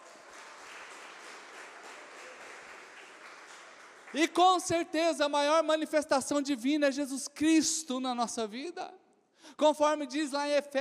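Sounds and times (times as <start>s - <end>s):
audience applause: 0.0s - 4.4s
speech: 4.1s - 10.7s.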